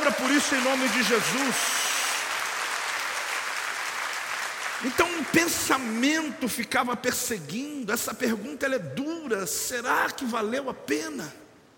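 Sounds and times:
audience applauding: 0.0s - 6.4s
speech: 0.1s - 1.8s, 4.8s - 11.4s.

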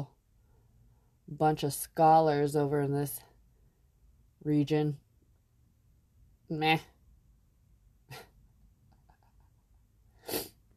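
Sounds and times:
speech: 1.3s - 3.3s, 4.4s - 5.0s, 6.5s - 6.9s
person sniffing: 10.2s - 10.6s.

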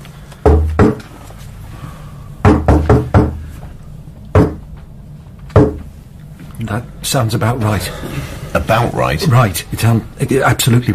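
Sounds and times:
sharp knocks on wood: 0.4s - 1.1s, 2.4s - 3.4s, 4.3s - 4.8s, 5.5s - 5.9s
speech: 6.6s - 10.9s.

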